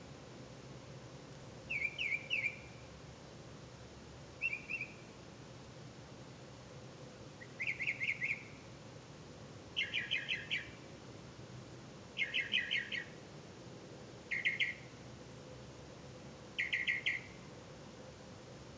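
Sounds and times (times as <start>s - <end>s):
bird: 1.7s - 2.8s, 4.4s - 5.1s, 7.4s - 8.6s, 9.8s - 10.9s, 12.2s - 13.2s, 14.3s - 15.0s, 16.6s - 17.4s.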